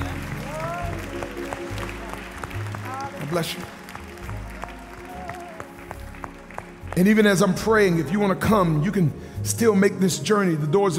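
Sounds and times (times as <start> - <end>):
audience cheering and applauding: 0.0 - 8.1
speech: 3.3 - 3.8, 7.0 - 10.9.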